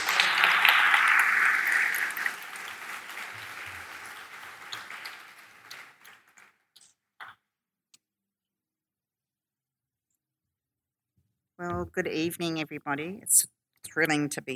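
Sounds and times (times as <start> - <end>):
audience applause welcoming a speaker at an evening event: 0.0 - 6.6
speech: 11.8 - 14.5.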